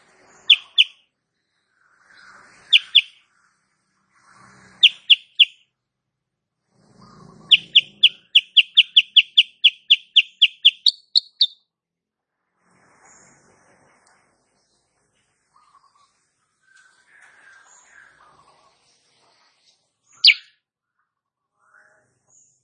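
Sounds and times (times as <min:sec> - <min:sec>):
female sooty-headed bulbul chirping song: 0:00.3 - 0:01.0, 0:02.7 - 0:03.2, 0:04.8 - 0:05.6, 0:07.4 - 0:11.6, 0:20.2 - 0:20.5.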